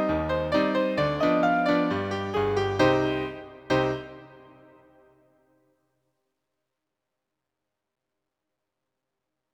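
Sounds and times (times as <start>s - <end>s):
ragtime tango solo: 0.0s - 4.6s.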